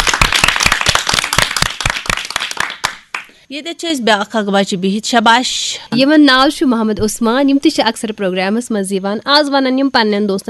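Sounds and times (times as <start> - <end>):
loud applause from a group of people: 0.0 - 3.3
speech: 3.5 - 10.4.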